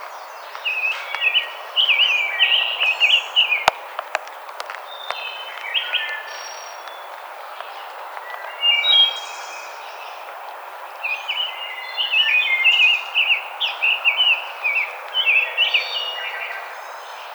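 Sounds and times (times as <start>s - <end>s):
Rose-breasted grosbeak warbling whistled song: 0.0s - 17.3s
sharp clicks: 3.4s - 8.6s.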